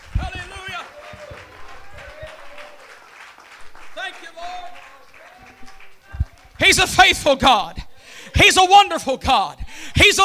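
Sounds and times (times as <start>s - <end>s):
audience clapping hands: 0.0s - 7.6s
speech: 6.7s - 7.8s, 8.4s - 10.2s.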